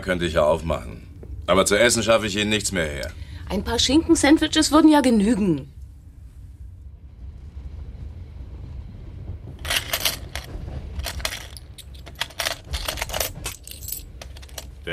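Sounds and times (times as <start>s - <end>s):
speech: 0.0s - 5.8s
coins being counted in a cash till: 9.6s - 14.8s.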